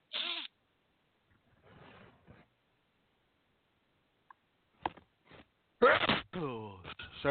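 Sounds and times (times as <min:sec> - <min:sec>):
person sneezing: 0:05.8 - 0:06.6.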